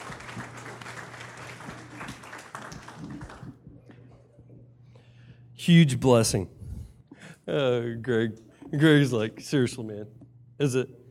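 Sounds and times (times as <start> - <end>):
audience applauding: 0.0 - 4.1
low steady hum: 0.0 - 11.0
speech: 5.6 - 6.6, 7.5 - 11.0.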